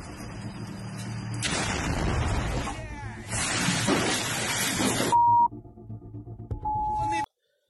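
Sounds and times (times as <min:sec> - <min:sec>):
tank firing a round during street fighting in Mariupol: 0:00.0 - 0:05.0
tank running onto a mine in Mariupol: 0:01.4 - 0:05.2
electronic beeps: 0:05.1 - 0:05.6, 0:06.5 - 0:07.3.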